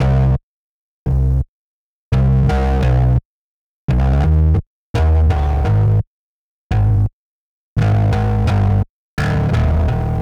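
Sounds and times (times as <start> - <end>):
bass: 0.0 - 0.4, 1.1 - 1.5, 2.1 - 3.2, 3.9 - 6.1, 6.7 - 7.1, 7.8 - 10.1.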